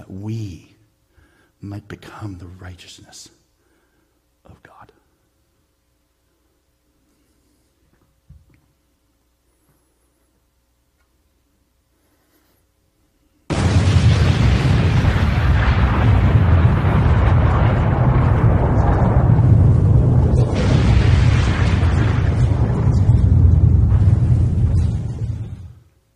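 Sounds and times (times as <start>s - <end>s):
speech: 0.1s - 0.7s, 1.6s - 3.4s, 4.4s - 5.0s
loud explosion kaboom sound effect: 13.5s - 25.9s.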